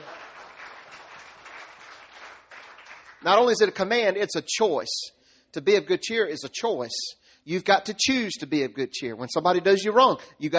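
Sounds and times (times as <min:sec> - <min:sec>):
audience applauding: 0:00.0 - 0:03.3
speech: 0:03.2 - 0:10.5.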